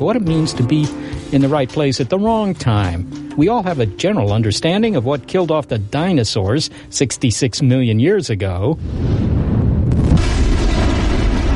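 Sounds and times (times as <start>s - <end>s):
speech: 0.0s - 9.4s
asteroid crashing into Earth explosion: 8.8s - 11.5s.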